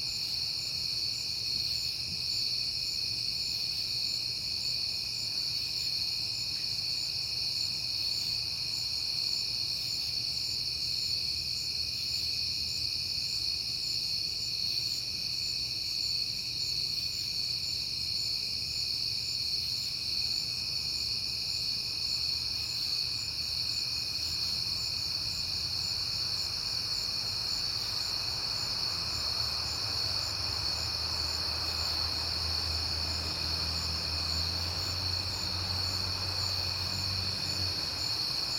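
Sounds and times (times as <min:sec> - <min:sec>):
cricket chorus trilling: 0:00.0 - 0:38.5
passing car: 0:27.1 - 0:38.5.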